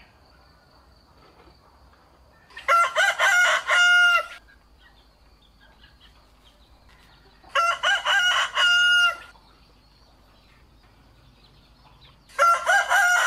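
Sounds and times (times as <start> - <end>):
rooster crowing: 2.5 - 4.4, 7.3 - 9.3, 12.3 - 13.2.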